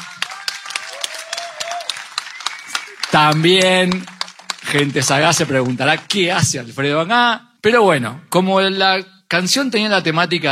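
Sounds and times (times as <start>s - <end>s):
audience applause: 0.0s - 6.5s
speech: 3.1s - 4.1s, 4.7s - 10.5s.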